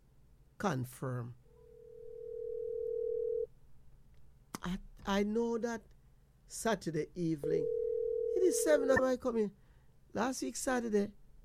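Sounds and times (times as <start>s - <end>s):
low hum: 0.0s - 11.4s
speech: 0.6s - 1.4s, 4.6s - 7.8s, 8.4s - 11.2s
telephone dial tone: 1.8s - 3.5s, 7.6s - 9.0s.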